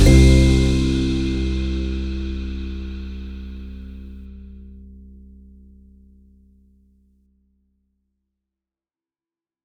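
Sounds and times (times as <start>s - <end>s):
uplifting folk kit music: 0.0s - 3.5s.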